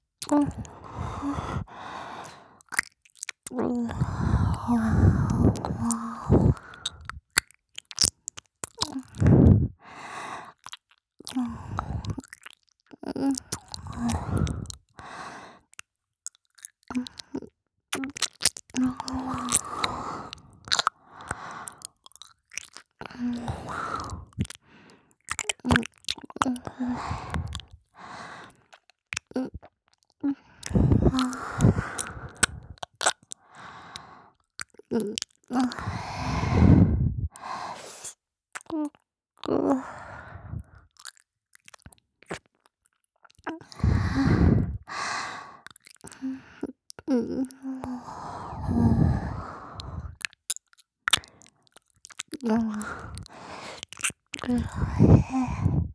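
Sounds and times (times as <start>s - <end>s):
ASMR whispered mouth sounds in the left ear: 0.2s - 9.8s, 10.5s - 14.9s, 16.9s - 22.0s, 22.6s - 24.6s, 25.3s - 27.8s, 30.3s - 33.4s, 34.6s - 40.8s, 43.3s - 44.9s, 45.7s - 55.9s.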